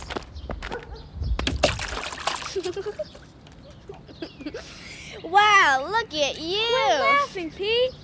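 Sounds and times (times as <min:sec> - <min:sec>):
splash of someone jumping into a mud puddle: 0:01.4 - 0:02.9
speech: 0:02.6 - 0:03.3, 0:05.3 - 0:08.0.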